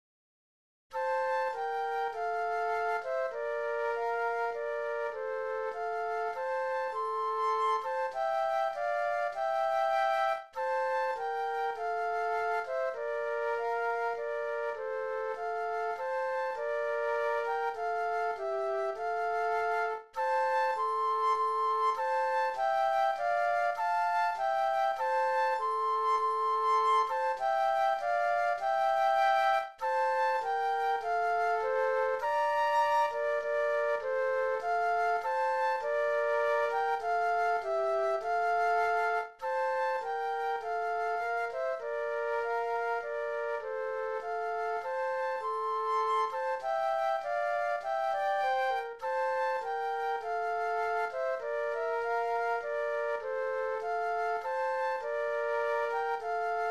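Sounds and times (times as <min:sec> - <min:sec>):
flute duet: 0:00.9 - 0:56.7.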